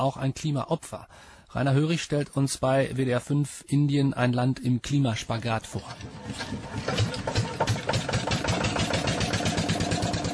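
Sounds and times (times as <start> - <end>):
speech: 0.0 - 7.4
small fishing boat engine chugging on a river: 6.0 - 10.3.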